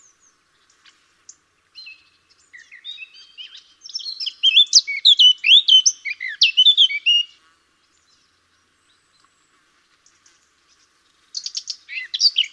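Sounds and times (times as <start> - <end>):
Eurasian blackcap Sylvia atricapilla song of hurried warbling and mellow whistles: 2.6 - 7.3.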